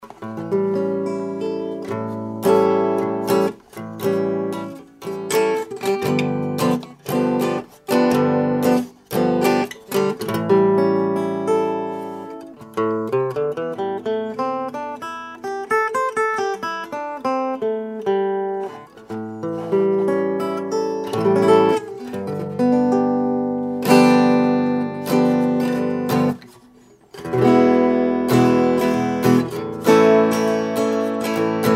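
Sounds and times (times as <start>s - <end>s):
Telecaster electro-acoustic guitar, pure acoustic: 0.0s - 31.7s.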